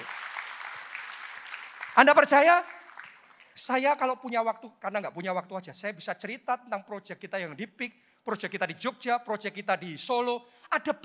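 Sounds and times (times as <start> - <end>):
audience applause: 0.0 - 3.6
speech: 2.0 - 2.7, 3.6 - 11.0.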